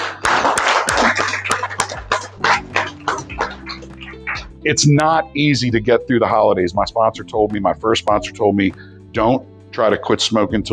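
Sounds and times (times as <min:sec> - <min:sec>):
audience applause: 0:00.0 - 0:04.5
speech: 0:04.6 - 0:10.7.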